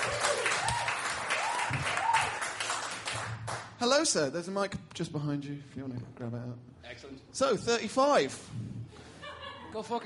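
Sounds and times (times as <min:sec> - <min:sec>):
crowd applause: 0:00.0 - 0:03.6
faint whoops and shouts: 0:00.1 - 0:02.4
speech: 0:03.8 - 0:08.8, 0:09.7 - 0:10.0
laughter: 0:08.9 - 0:10.0.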